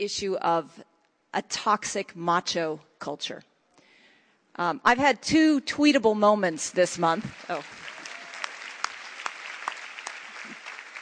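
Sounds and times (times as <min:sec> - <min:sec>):
speech: 0:00.0 - 0:03.5, 0:04.6 - 0:07.8
audience clapping: 0:07.0 - 0:11.0.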